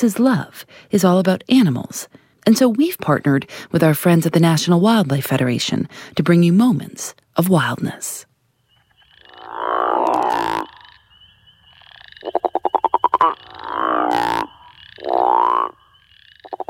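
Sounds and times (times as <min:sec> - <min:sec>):
speech: 0:00.0 - 0:08.3, 0:13.2 - 0:15.8
crawfish frog deep guttural snoring call: 0:09.2 - 0:11.0, 0:11.7 - 0:16.6.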